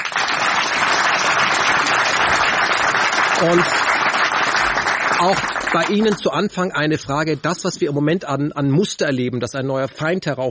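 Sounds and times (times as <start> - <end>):
audience applause: 0.0 - 6.6
speech: 3.4 - 3.9, 5.2 - 10.4.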